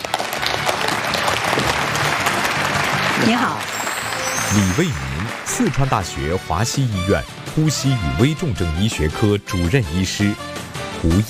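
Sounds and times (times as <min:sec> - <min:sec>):
audience applause: 0:00.0 - 0:07.9
speech: 0:03.2 - 0:03.7, 0:04.5 - 0:11.2.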